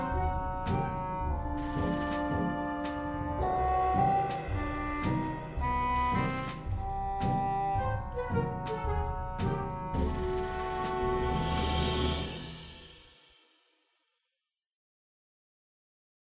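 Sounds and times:
pizzicato strings: 0.0s - 12.4s.

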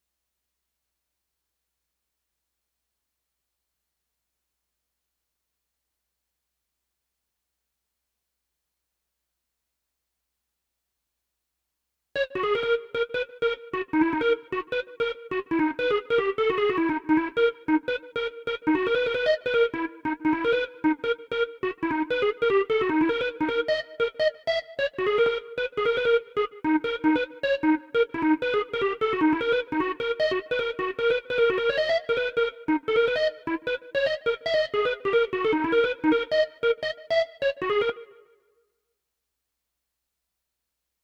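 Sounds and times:
melody: 12.3s - 38.2s.

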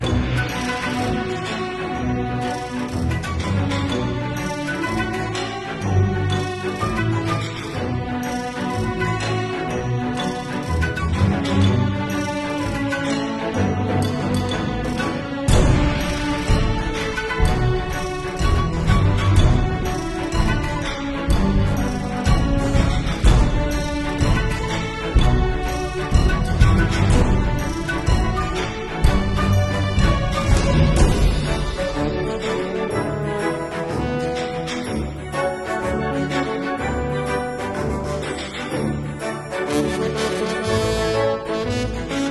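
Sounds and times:
mining background music: 0.0s - 42.2s.

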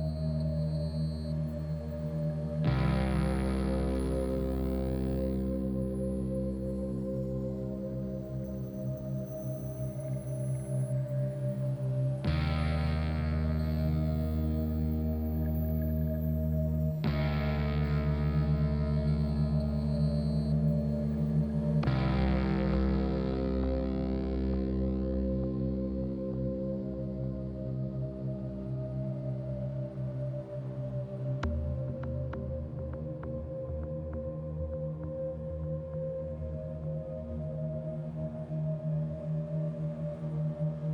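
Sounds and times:
ambient space guitar: 0.0s - 40.9s.

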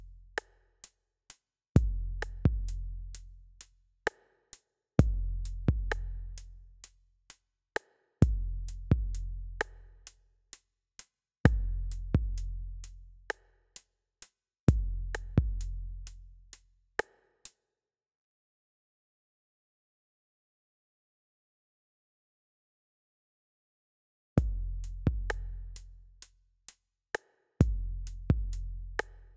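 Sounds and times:
drums and percussion: 0.0s - 7.0s, 7.8s - 10.6s, 11.5s - 13.9s, 14.7s - 17.6s, 24.4s - 29.3s.

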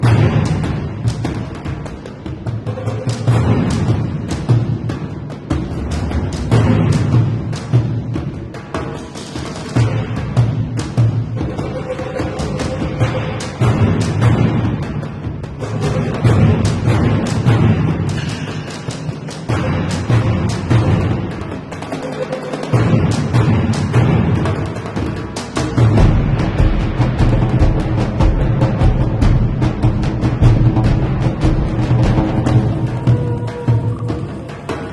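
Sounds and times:
battle music: 0.0s - 34.9s.

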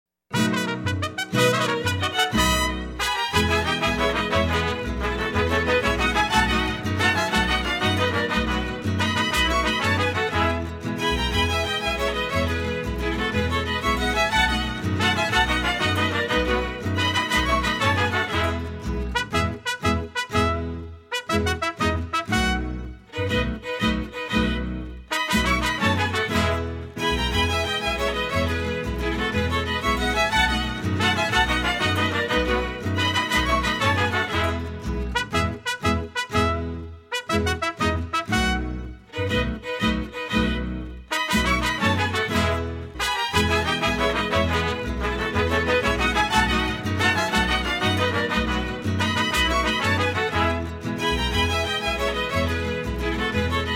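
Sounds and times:
Mexican folk dance tune: 0.3s - 53.7s.

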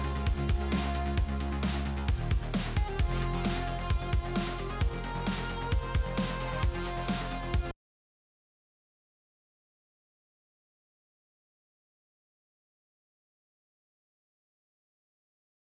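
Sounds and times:
intro music: 0.0s - 7.7s.

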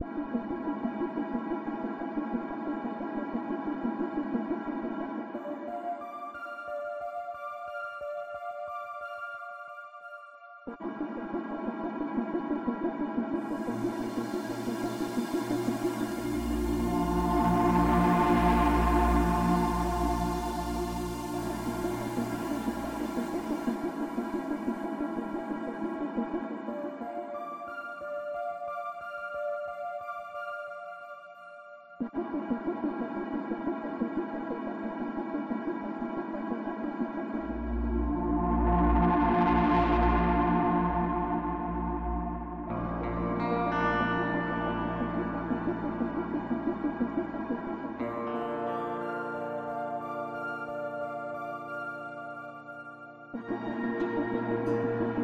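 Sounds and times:
city ambient music: 0.0s - 55.2s.

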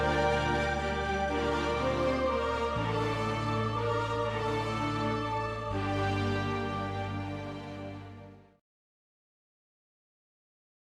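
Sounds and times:
slow victory music: 0.0s - 8.4s.

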